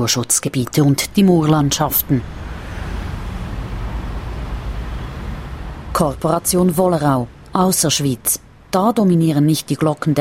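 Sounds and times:
speech: 0.0s - 2.4s, 6.0s - 10.1s
motorway traffic roar: 0.0s - 10.1s.

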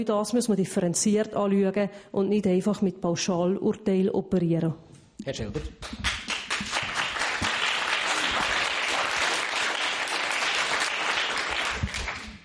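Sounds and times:
speech: 0.0s - 6.2s
audience applause: 6.0s - 12.4s.

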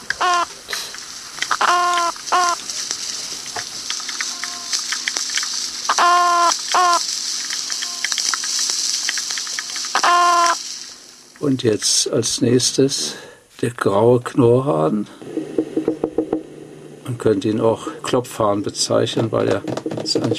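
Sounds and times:
Opsanus beta Gulf toadfish call: 0.0s - 0.5s, 1.4s - 2.7s, 3.7s - 10.9s
speech: 11.4s - 15.3s, 17.1s - 20.3s.

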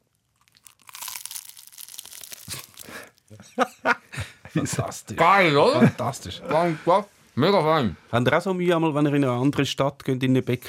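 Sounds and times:
biting into a crunchy apple pastry: 0.0s - 3.2s
crackling, crinkly chewing of crisp pastry layers: 0.0s - 3.3s
laughter: 3.3s - 6.9s
speech: 3.3s - 10.6s.

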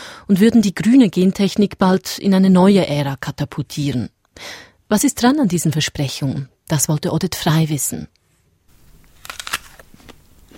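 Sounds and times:
speech: 0.3s - 8.2s
biting into a Gala apple: 8.8s - 10.5s
chewing apple: 9.2s - 10.5s.

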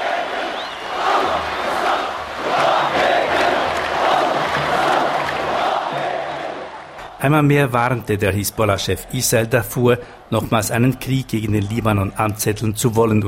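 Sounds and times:
crowd chanting enthusiastically: 0.0s - 7.6s
speech: 7.2s - 13.2s.

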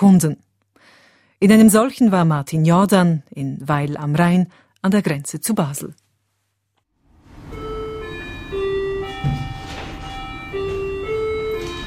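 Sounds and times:
speech: 0.0s - 0.5s, 1.4s - 6.0s
shop door bell announcing customers: 7.2s - 11.8s.

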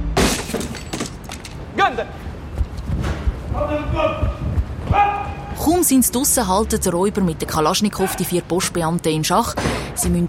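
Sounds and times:
door being battered until it breaks open: 0.1s - 1.6s
clattering debris: 0.2s - 1.7s
speech: 1.9s - 2.2s, 3.6s - 10.2s.

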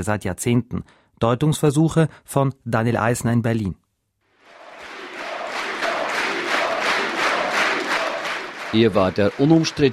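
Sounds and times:
speech: 0.0s - 3.8s, 8.7s - 9.9s
large crowd of party supporters cheering: 4.4s - 9.9s
people shouting: 4.5s - 8.8s.

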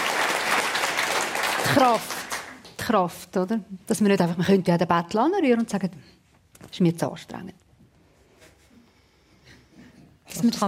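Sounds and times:
audience applause for Simonetta Sommaruga: 0.0s - 2.6s
speech: 1.7s - 2.2s, 2.9s - 7.6s, 10.3s - 10.6s.

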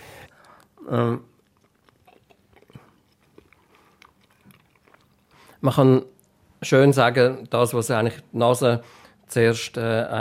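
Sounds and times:
chewing mouth sounds while tasting smoked salmon: 0.4s - 5.6s
speech: 0.8s - 1.3s, 5.6s - 10.1s.

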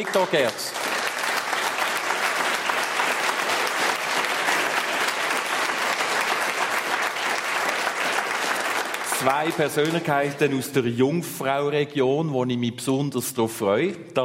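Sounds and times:
speech: 0.0s - 0.8s, 9.2s - 14.2s
audience applause: 0.0s - 10.6s.

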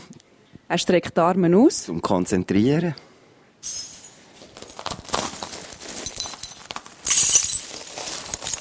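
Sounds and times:
speech: 0.7s - 3.8s
glass shards crunching under bare feet: 3.6s - 8.6s.

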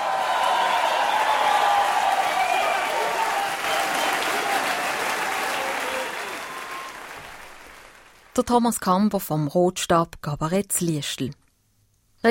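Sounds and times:
final applause of cabaret audience: 0.0s - 8.4s
speech: 8.4s - 11.4s.

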